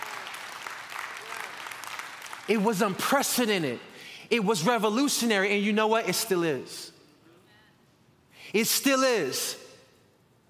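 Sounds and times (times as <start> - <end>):
crowd applause: 0.0 - 2.5
speech: 2.5 - 6.9, 8.5 - 9.6.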